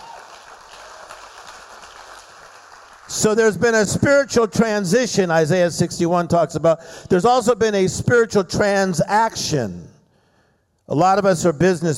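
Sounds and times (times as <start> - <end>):
audience clapping: 0.0 - 3.4
speech: 3.1 - 9.9, 10.9 - 11.9.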